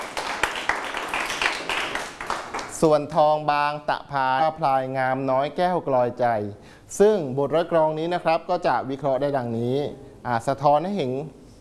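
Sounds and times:
classroom clapping for a classmate: 0.0s - 2.8s
speech: 2.8s - 11.4s.

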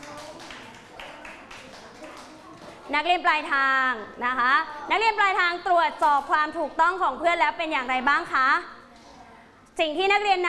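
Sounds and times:
students clapping for a group in a classroom: 0.0s - 2.6s
speech: 2.9s - 8.8s, 9.8s - 10.4s.

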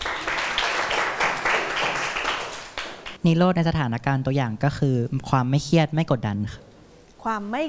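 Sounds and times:
students clapping: 0.0s - 3.2s
speech: 3.2s - 7.6s.

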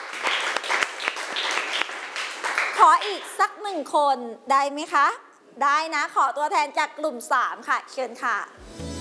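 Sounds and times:
students clapping for a classmate in a classroom: 0.0s - 3.4s
speech: 2.8s - 8.9s.

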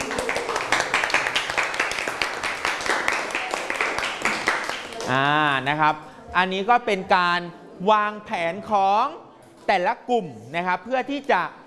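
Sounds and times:
classroom of students clapping for a classmate: 0.0s - 5.2s
speech: 5.1s - 11.6s.

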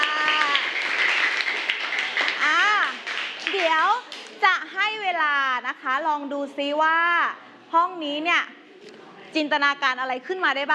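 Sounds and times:
audience clapping hands: 0.0s - 4.4s
speech: 5.7s - 8.6s, 9.3s - 10.7s.

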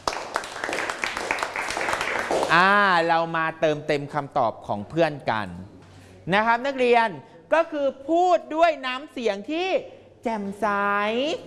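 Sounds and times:
classroom clapping: 0.0s - 2.8s
speech: 2.3s - 11.4s.

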